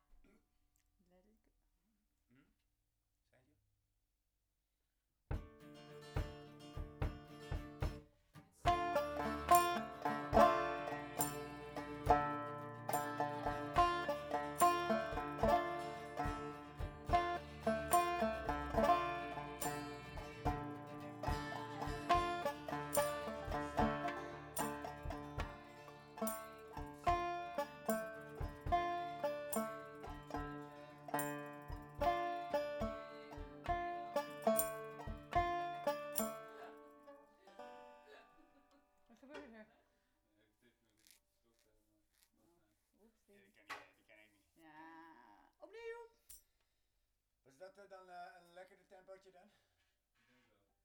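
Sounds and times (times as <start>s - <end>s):
banjo: 5.3s - 39.6s.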